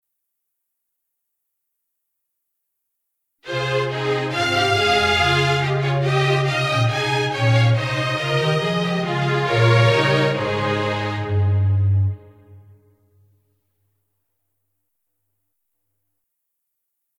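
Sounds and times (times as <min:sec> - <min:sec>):
instrumental music: 0:03.4 - 0:13.5.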